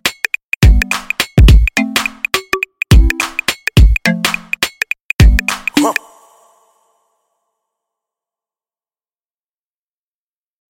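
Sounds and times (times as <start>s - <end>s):
juju highlife instrumental beat: 0.0s - 7.0s.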